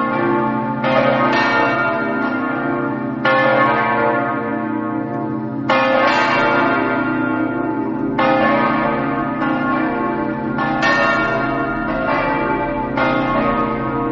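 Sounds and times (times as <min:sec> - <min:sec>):
bells in Gemona: 0:00.0 - 0:14.1.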